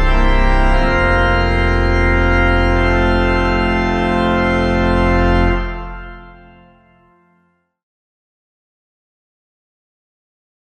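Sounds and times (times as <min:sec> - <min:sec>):
organ playing a hymn: 0:00.0 - 0:07.5.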